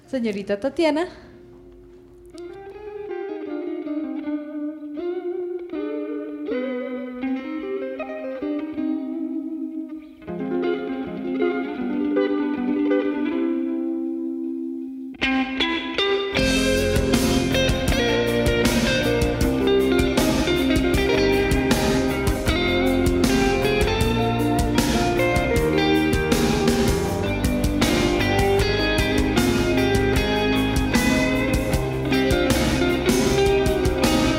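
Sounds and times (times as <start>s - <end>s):
speech: 0.1s - 1.3s
effects-laden electric guitar picking a melodic riff: 1.2s - 34.3s
full band with pounding drums and distorted guitar: 16.4s - 34.3s.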